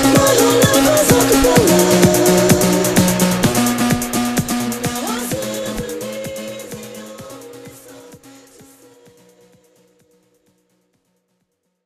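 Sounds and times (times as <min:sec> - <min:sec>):
a cappella singing: 0:00.0 - 0:04.0, 0:04.8 - 0:09.9.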